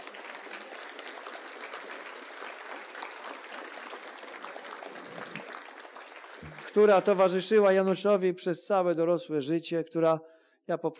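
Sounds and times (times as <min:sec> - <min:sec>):
audience applause: 0:00.0 - 0:07.5
speech: 0:06.8 - 0:10.9.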